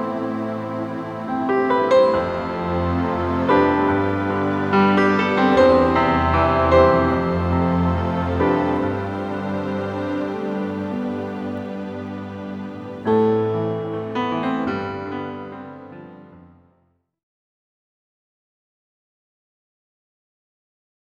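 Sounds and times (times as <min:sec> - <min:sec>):
orchestral music: 0:00.0 - 0:16.3.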